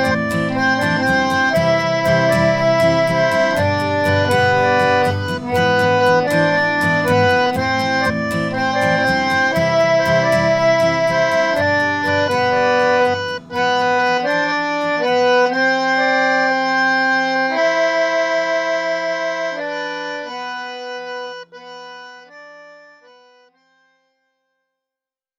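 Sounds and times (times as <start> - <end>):
automatic melodica: 0.0 - 23.9.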